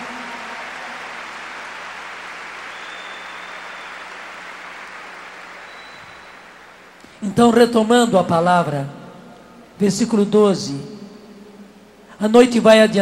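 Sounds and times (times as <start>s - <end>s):
church congregation clapping during a sermon: 0.0s - 7.2s
speech: 7.1s - 9.0s, 9.8s - 10.9s, 12.2s - 13.0s.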